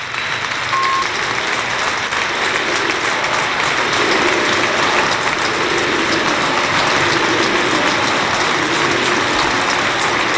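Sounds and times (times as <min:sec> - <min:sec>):
stadium crowd ovation at the Arcángel: 0:00.0 - 0:10.3.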